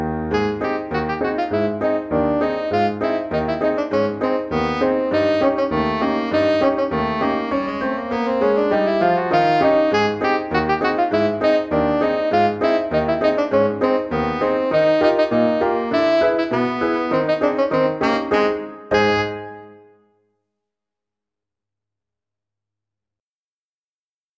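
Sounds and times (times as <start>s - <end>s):
tenor saxophone playing a circus march: 0.3s - 20.0s.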